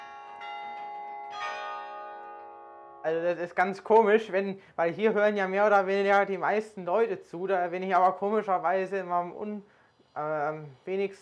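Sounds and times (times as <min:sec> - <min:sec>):
carillon bells played from the tower: 0:00.0 - 0:03.4
speech: 0:03.0 - 0:11.2.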